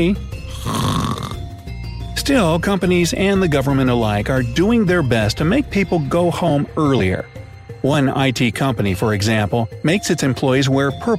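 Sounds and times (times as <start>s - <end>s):
speech: 0.0s - 0.8s, 2.3s - 11.1s
loud rumbling snore while napping: 0.5s - 1.6s.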